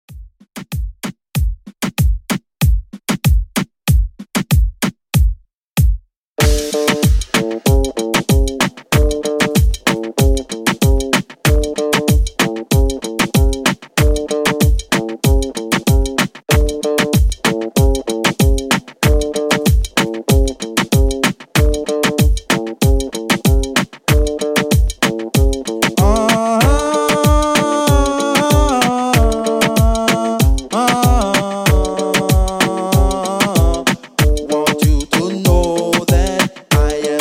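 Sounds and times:
Afro reggaeton beat at 95 BPM: 0:00.1 - 0:37.1.

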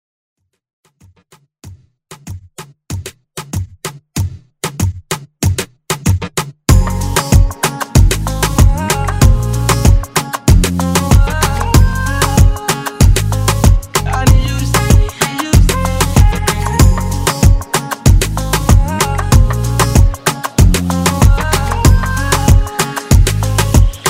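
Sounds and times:
moombahton music: 0:00.9 - 0:24.0.

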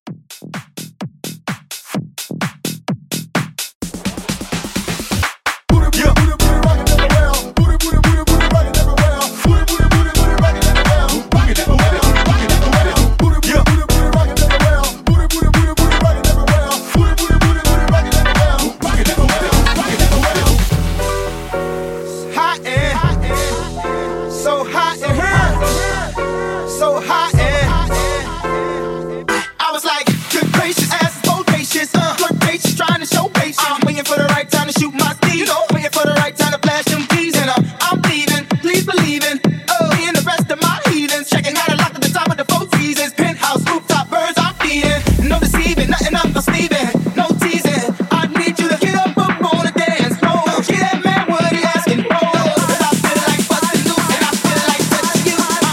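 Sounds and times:
club house music: 0:00.3 - 0:55.7.

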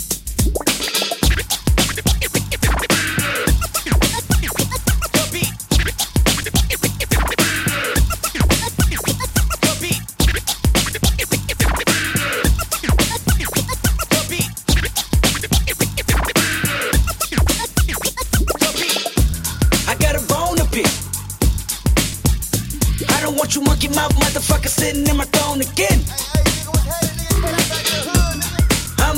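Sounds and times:
dirty record scratching at 107 BPM: 0:00.4 - 0:21.0, 0:21.8 - 0:29.1.

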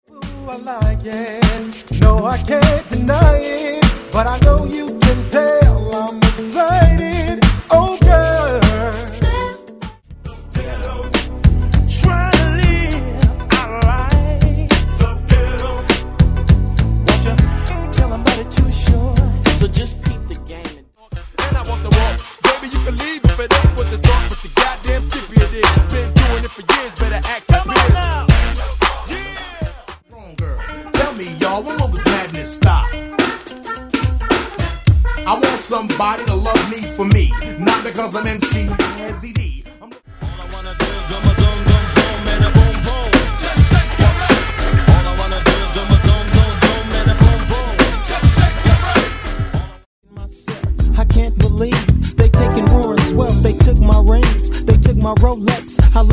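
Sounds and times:
old school hip hop RnB beat: 0:00.1 - 0:56.1.

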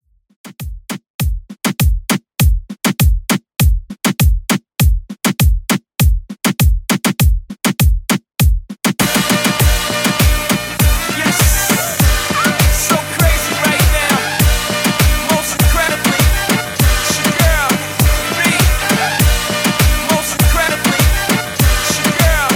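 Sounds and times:
reggaeton beat: 0:00.4 - 0:22.5.

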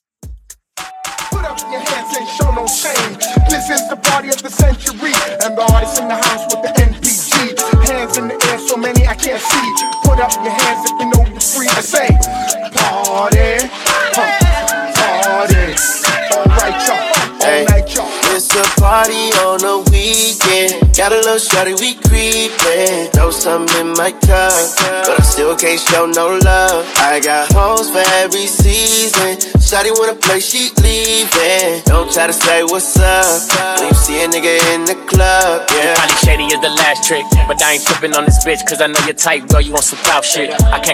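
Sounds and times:
club drum beat at 110 BPM: 0:00.2 - 0:40.9
hype vocal shouts: 0:12.3 - 0:18.3.

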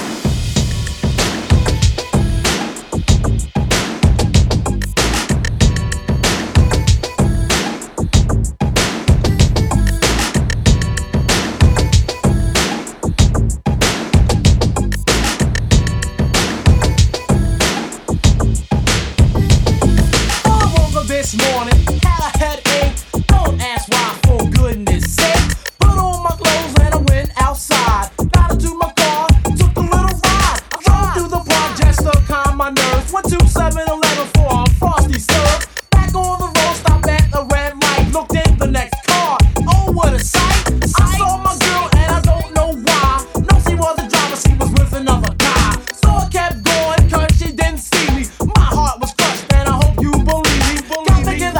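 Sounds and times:
eighties style music at 95 bpm: 0:00.2 - 0:51.5.

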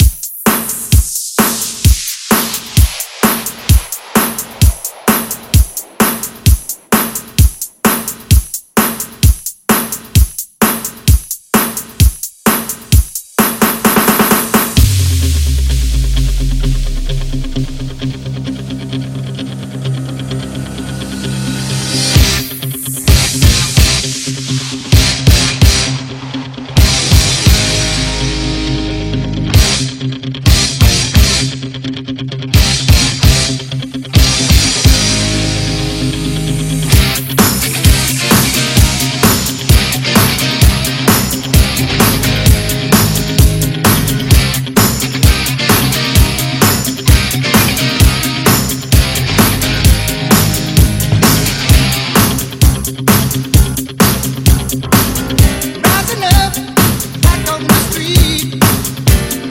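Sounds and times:
upbeat 1980s music: 0:00.0 - 0:31.4, 0:32.6 - 0:59.4.

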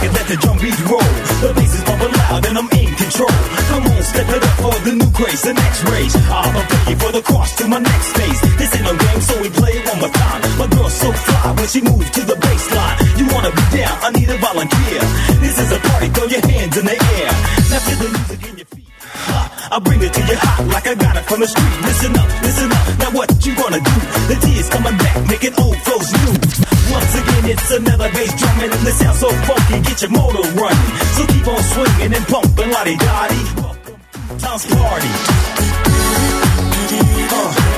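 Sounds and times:
90s drum beat at 105 bpm: 0:00.0 - 0:37.7.

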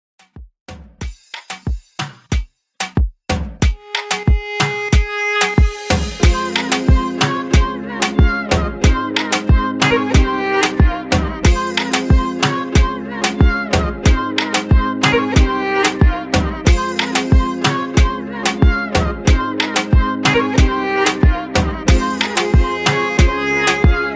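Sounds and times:
moombahton beat at 92 BPM: 0:00.2 - 0:24.1.

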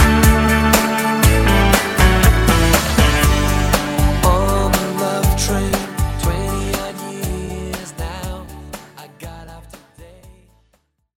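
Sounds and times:
drum beat: 0:00.0 - 0:07.4.

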